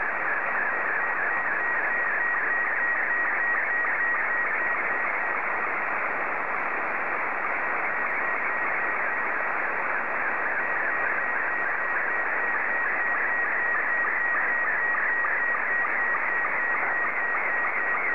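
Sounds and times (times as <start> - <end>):
Robot 72 slow-scan television signal: 0.0 - 18.1.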